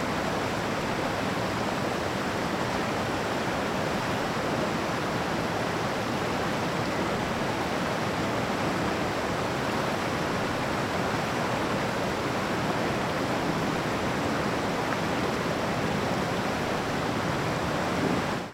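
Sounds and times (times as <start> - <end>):
hot spring: 0.0 - 18.5.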